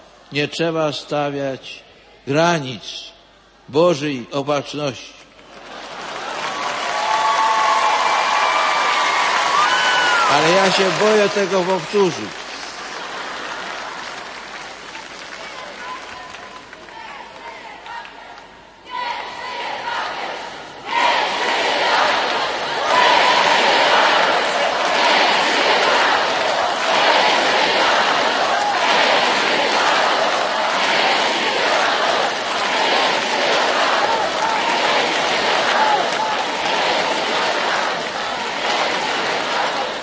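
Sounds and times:
speech: 0.3 - 5.3, 10.3 - 12.4
crowd shouting and cheering: 6.2 - 12.4, 15.5 - 40.0.

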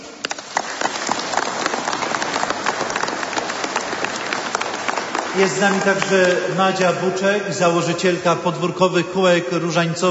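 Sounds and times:
warm applause from pilgrims: 0.0 - 7.0
speech: 5.4 - 10.0.

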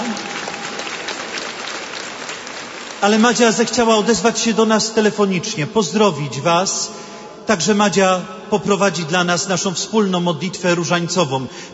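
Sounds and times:
audience applause for a graduate: 0.0 - 4.3
speech: 3.0 - 11.7.

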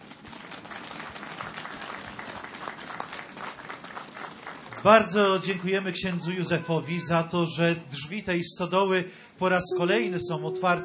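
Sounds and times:
audience applause: 0.0 - 7.0
speech: 4.8 - 10.8.

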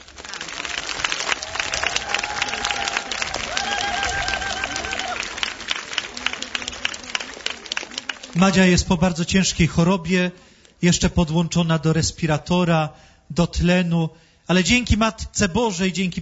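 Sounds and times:
crowd applause: 0.0 - 9.2
speech: 8.4 - 16.2.

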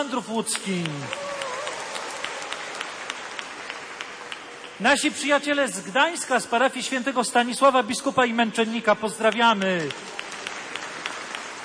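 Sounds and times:
speech: 0.0 - 1.4, 4.8 - 10.2
audience applauding: 0.5 - 5.2, 9.5 - 11.6.

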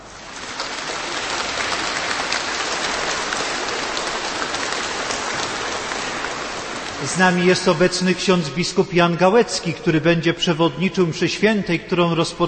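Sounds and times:
audience applause: 0.0 - 8.1
speech: 7.0 - 12.4.

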